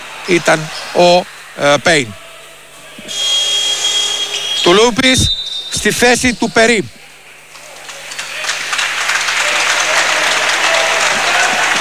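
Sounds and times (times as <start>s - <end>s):
warm applause from the crowd: 0.0s - 4.5s, 7.1s - 11.7s
speech: 0.3s - 2.2s, 3.1s - 3.3s, 4.6s - 7.0s.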